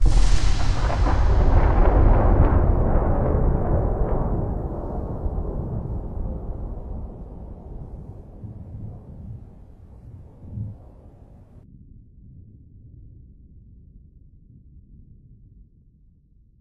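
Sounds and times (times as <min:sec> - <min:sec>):
vortex flash effect: 0:00.0 - 0:11.6.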